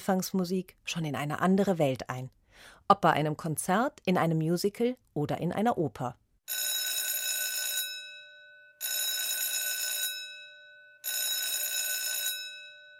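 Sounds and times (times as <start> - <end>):
speech: 0.0 - 6.7
theatre bell ringing before performance: 6.5 - 12.9.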